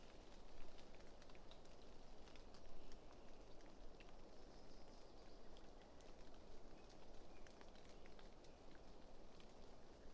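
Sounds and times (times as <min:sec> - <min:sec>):
rain from a passing thunderstorm falling in an aspen and pine forest: 0:00.0 - 0:10.1.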